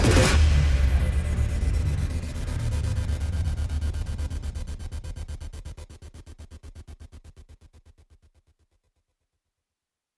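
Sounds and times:
horror tension music: 0.0s - 7.6s.

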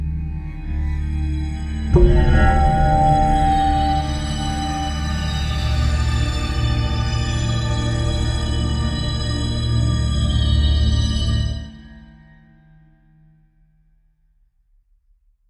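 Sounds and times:
dark tension horror music: 0.1s - 12.0s.

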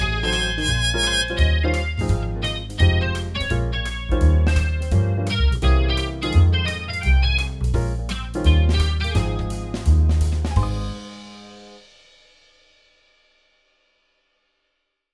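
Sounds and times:
jazz music: 0.0s - 11.9s.

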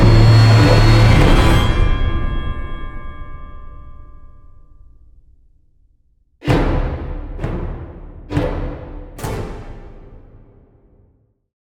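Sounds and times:
horror music: 0.0s - 4.0s, 6.4s - 11.0s.

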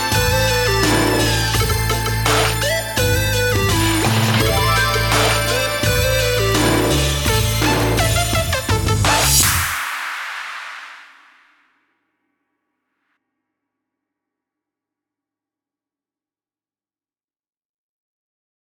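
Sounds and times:
drone: 0.0s - 9.7s.

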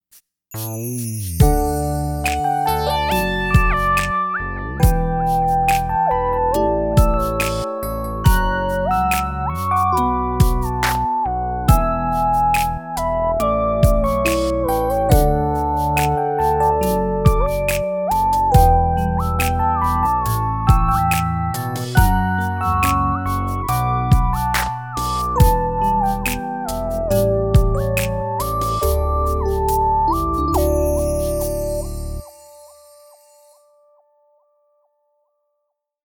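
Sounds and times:
R&B ballad: 1.2s - 32.4s.

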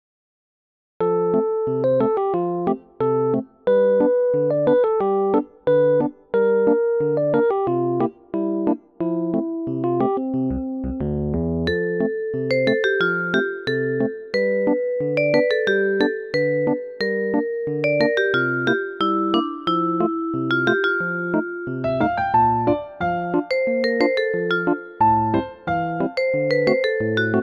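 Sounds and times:
new age music: 1.1s - 27.4s.

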